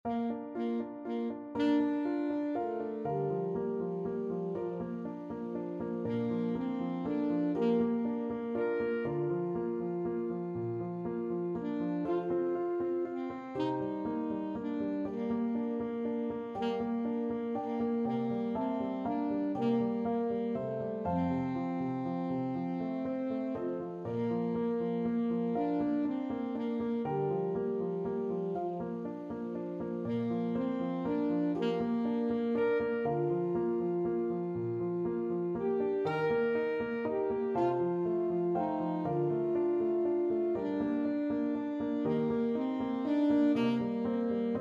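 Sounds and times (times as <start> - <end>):
saxophone: 0.0 - 44.5.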